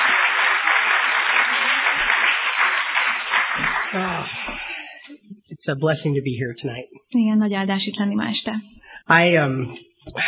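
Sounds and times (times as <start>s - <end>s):
Budapest audience applause welcoming a visiting pastor: 0.0s - 4.7s
speech: 5.6s - 10.2s.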